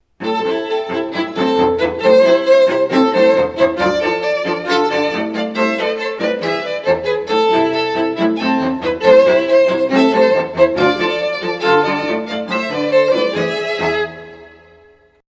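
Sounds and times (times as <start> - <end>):
strings: 0.1 - 15.2.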